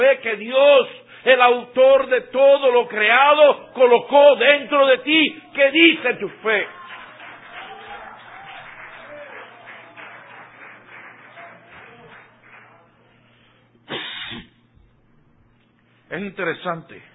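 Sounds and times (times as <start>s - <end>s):
speech: 0.0s - 6.8s, 16.1s - 17.1s
audience applauding: 5.4s - 13.4s.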